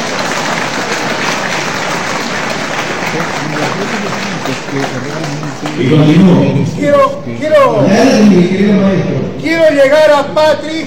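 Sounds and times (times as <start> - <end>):
audience applause: 0.0 - 6.7
speech: 3.1 - 10.8.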